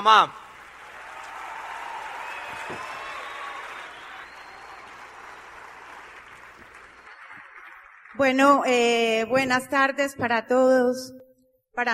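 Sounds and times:
speech: 0.0 - 0.4, 8.2 - 11.2, 11.8 - 11.9
audience applause: 0.5 - 8.2.

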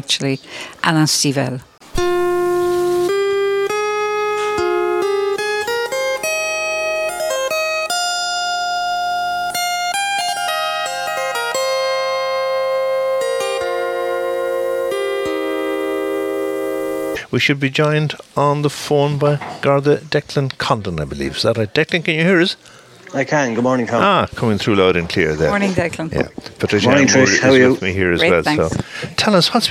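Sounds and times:
speech: 0.0 - 1.7, 17.3 - 29.6
solo harp playing Irish-style melody: 1.9 - 17.2.

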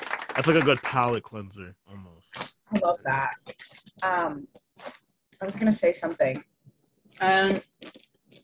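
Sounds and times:
speech: 0.4 - 2.0, 2.7 - 6.5, 7.2 - 7.7
short vocal reaction: 1.2 - 2.5.

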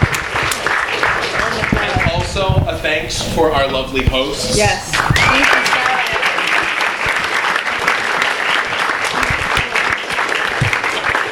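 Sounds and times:
audience round of applause: 0.0 - 2.6, 5.0 - 11.3
speech: 2.8 - 5.8.

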